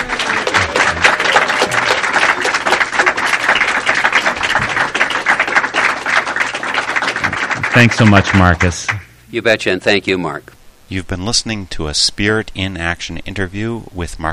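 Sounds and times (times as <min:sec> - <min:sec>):
audience applauding loudly: 0:00.0 - 0:09.1
speech: 0:07.8 - 0:14.3.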